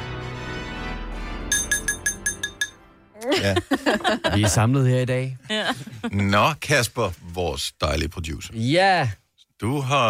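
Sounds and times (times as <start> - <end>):
tapping a glass for a toast: 1.5 - 2.8
laughter: 3.2 - 4.7, 5.4 - 6.3
speech: 3.2 - 10.0.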